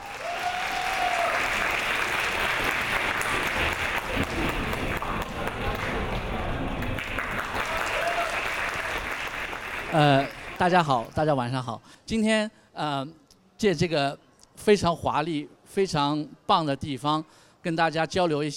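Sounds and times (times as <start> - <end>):
audience applause: 0.0 - 11.1
speech: 10.0 - 18.5.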